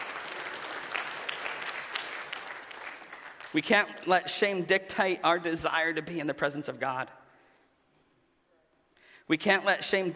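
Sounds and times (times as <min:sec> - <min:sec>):
audience applauding: 0:00.0 - 0:04.1
speech: 0:03.5 - 0:07.2, 0:09.3 - 0:10.1.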